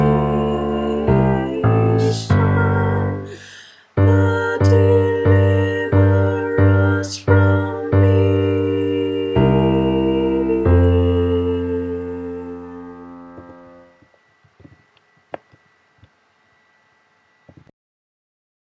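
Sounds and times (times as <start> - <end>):
bass: 0.0 - 14.0.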